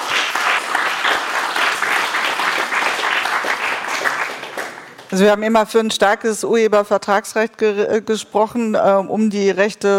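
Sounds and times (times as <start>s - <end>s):
audience applause: 0.0s - 5.1s
speech: 5.1s - 9.9s.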